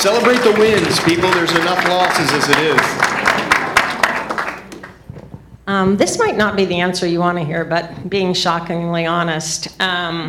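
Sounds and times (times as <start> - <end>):
speech: 0.0 - 3.1, 5.7 - 10.2
crowd clapping: 0.0 - 5.1.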